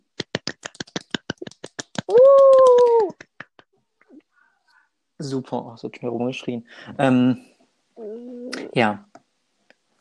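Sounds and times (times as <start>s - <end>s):
hand clapping: 0.1s - 3.7s
speech: 5.2s - 7.5s, 8.8s - 9.1s.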